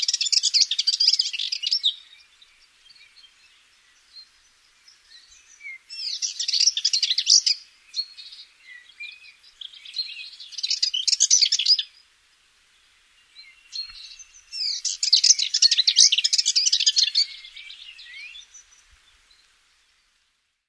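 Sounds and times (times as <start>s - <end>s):
eastern subalpine warbler singing: 0.0s - 20.4s.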